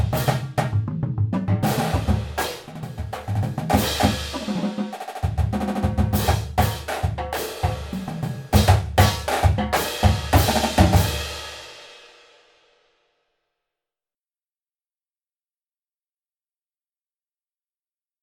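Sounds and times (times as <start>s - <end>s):
drumline playing cadences: 0.0s - 11.5s.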